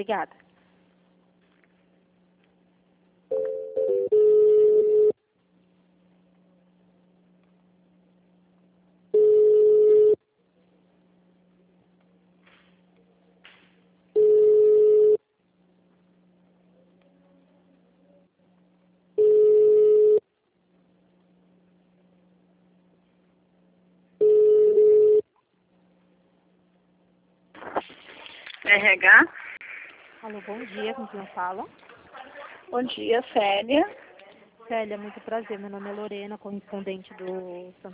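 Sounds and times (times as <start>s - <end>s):
speech: 0.0s - 0.5s, 30.3s - 31.9s, 32.7s - 34.0s, 34.7s - 37.9s
faint low hum: 0.0s - 37.9s
telephone ringback tones while a call is transferred: 3.3s - 5.1s, 9.2s - 10.2s, 14.2s - 15.2s, 19.2s - 20.2s, 24.2s - 25.2s.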